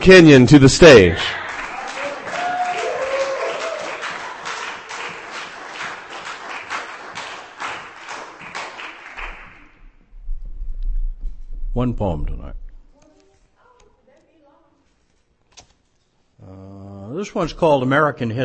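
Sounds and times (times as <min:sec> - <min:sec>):
speech: 0:00.0 - 0:01.4, 0:11.8 - 0:12.6, 0:17.2 - 0:18.4
audience applause at a poetry reading: 0:01.2 - 0:09.7.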